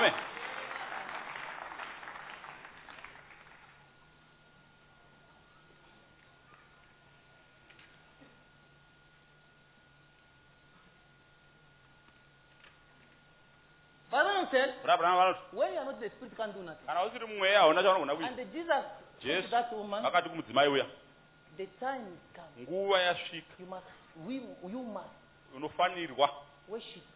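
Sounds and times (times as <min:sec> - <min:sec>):
audience clapping: 0:00.0 - 0:03.9
low steady hum: 0:00.0 - 0:27.1
speech: 0:14.2 - 0:21.0, 0:21.6 - 0:27.1.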